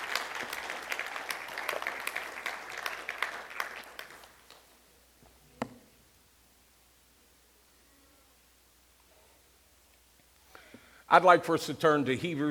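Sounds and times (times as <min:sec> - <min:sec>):
round of applause from a group: 0:00.0 - 0:04.7
speech: 0:11.1 - 0:12.4.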